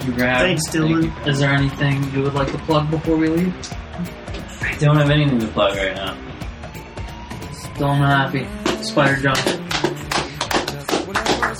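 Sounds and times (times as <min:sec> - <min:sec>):
speech: 0:00.0 - 0:04.2, 0:04.8 - 0:06.3, 0:07.8 - 0:09.7
person clapping: 0:08.6 - 0:11.5.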